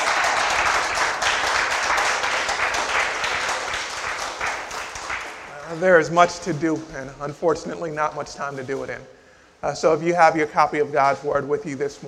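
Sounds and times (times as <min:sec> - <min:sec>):
audience hand clapping: 0:00.0 - 0:06.0
speech: 0:05.8 - 0:12.0.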